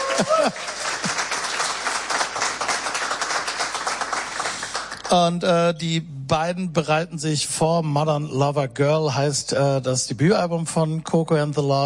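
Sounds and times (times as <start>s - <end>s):
audience applause for a musician from London: 0.0s - 5.1s
speech: 0.2s - 1.2s, 5.1s - 11.8s.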